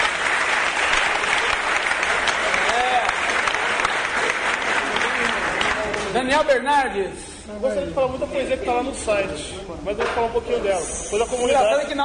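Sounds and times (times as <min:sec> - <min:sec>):
crowd clapping: 0:00.0 - 0:06.6
speech: 0:06.2 - 0:12.0.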